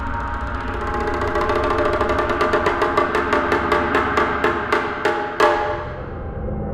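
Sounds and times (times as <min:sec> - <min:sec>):
outro music: 0:00.2 - 0:06.5.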